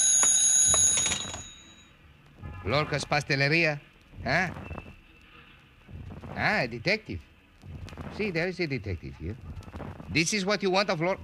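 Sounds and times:
telephone ringing: 0.0 - 1.9
speech: 2.6 - 4.6, 6.4 - 7.3, 8.1 - 9.5, 10.1 - 11.2.

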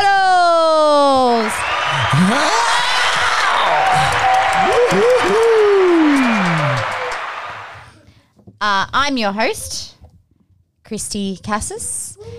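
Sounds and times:
crowd clapping sound effect: 1.1 - 8.0
speech: 2.2 - 2.7, 8.6 - 9.9, 10.8 - 12.3.

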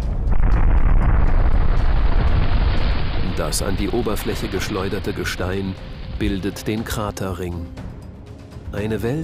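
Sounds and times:
sudden underground steam explosion: 0.1 - 6.2
speech: 3.4 - 7.8, 8.7 - 9.2.

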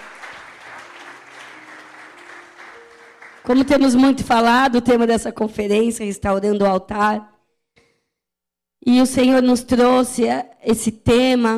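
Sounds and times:
crowd applause: 0.0 - 3.8
speech: 3.4 - 7.3, 8.8 - 11.5.

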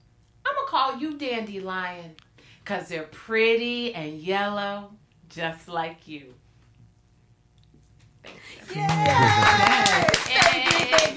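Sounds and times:
speech: 0.7 - 6.4, 8.2 - 10.1
applause sound effect track: 8.6 - 11.1
voices cheering: 8.6 - 11.1.

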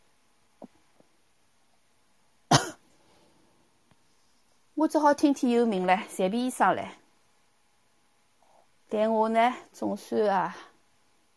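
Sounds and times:
person coughing: 2.5 - 2.8
speech: 4.8 - 7.0, 8.9 - 10.7.

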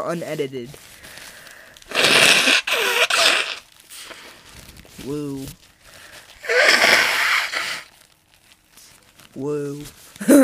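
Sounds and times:
speech: 0.0 - 1.0, 5.0 - 5.7, 9.4 - 10.4
person blowing nose: 1.3 - 4.6, 6.0 - 8.0.

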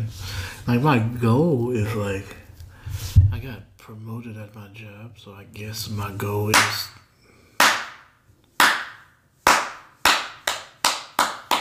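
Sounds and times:
speech: 0.7 - 2.4, 3.4 - 7.0
applause sound effect: 9.5 - 11.5.

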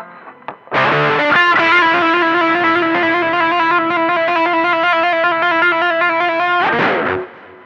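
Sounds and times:
heavy distorted electric guitar chord in a heavy metal shuffle song: 0.0 - 7.6.

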